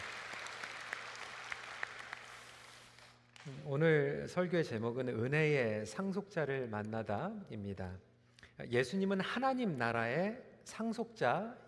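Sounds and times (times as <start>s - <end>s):
audience applause: 0.0s - 2.9s
speech: 3.4s - 11.6s.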